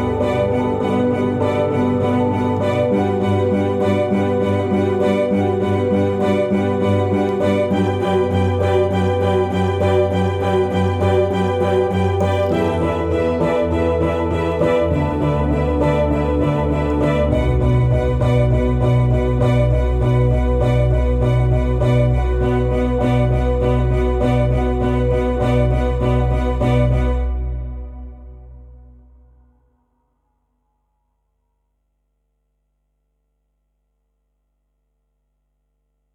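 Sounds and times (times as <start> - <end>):
pizzicato strings: 0.0 - 28.7.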